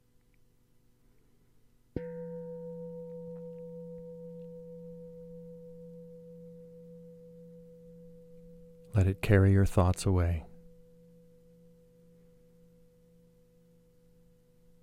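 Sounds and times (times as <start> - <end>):
meditation bell ringing: 2.0 - 9.0, 10.5 - 14.8
speech: 9.0 - 10.5.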